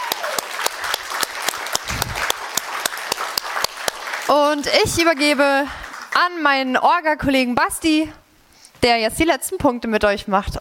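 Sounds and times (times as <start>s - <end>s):
applause: 0.0s - 6.5s
speech: 4.3s - 8.2s, 8.8s - 10.5s.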